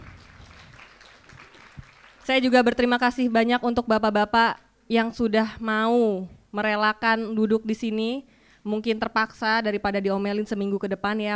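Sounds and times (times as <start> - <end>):
audience clapping: 0.0 - 3.0
speech: 2.3 - 11.3.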